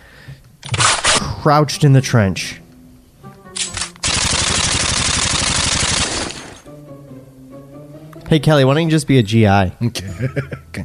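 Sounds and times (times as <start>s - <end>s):
speech: 1.4s - 2.6s, 8.3s - 10.8s
machine gun fire across a trench battle: 3.6s - 6.7s
rumbling gunfire: 4.0s - 6.6s.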